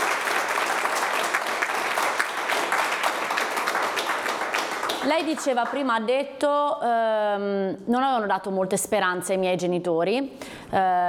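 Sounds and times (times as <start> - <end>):
audience applause: 0.0 - 5.9
speech: 5.0 - 11.0.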